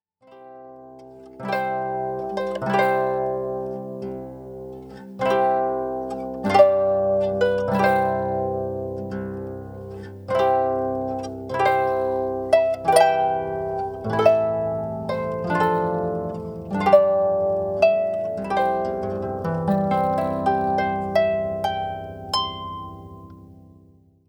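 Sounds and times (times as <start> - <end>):
harp playing a wedding march: 0.4 - 23.8.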